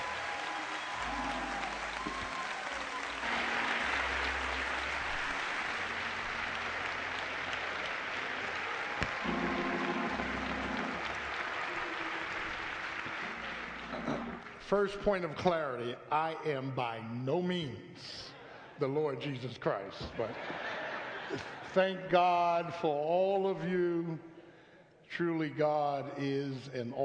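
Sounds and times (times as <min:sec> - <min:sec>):
audience applause: 0:00.0 - 0:14.8
speech: 0:14.7 - 0:20.6, 0:21.3 - 0:24.3, 0:25.1 - 0:27.0
laughter: 0:20.0 - 0:21.8.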